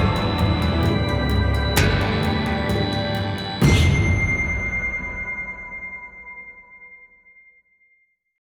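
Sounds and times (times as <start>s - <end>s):
action music loop: 0.0s - 6.2s.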